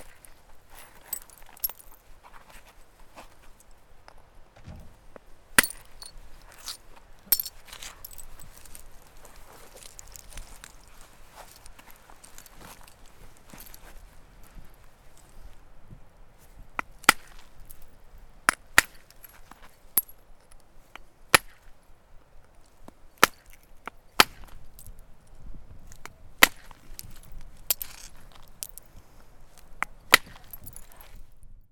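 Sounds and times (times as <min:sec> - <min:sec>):
elk against flint: 0:04.6 - 0:08.8, 0:16.8 - 0:17.8, 0:18.5 - 0:20.1, 0:20.9 - 0:21.7, 0:22.8 - 0:24.9, 0:25.9 - 0:28.8, 0:29.8 - 0:31.2.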